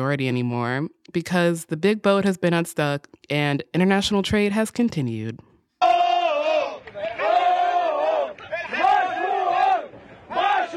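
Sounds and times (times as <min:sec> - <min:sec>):
speech: 0:00.0 - 0:05.5
tugboat crew cheering and shouting: 0:05.8 - 0:10.7.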